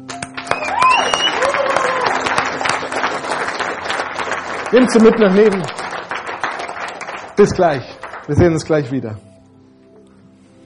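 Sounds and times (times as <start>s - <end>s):
audience applause: 0.2s - 8.7s
whistles: 0.5s - 1.7s
speech: 4.7s - 5.8s, 7.4s - 9.3s.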